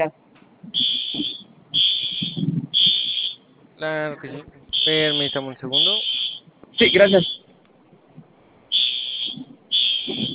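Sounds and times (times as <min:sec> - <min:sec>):
speech: 0:00.0 - 0:00.8, 0:03.8 - 0:06.1, 0:06.8 - 0:07.4
store entrance alarm siren high-pitched beeps: 0:00.7 - 0:03.5, 0:04.7 - 0:07.5, 0:08.7 - 0:10.3.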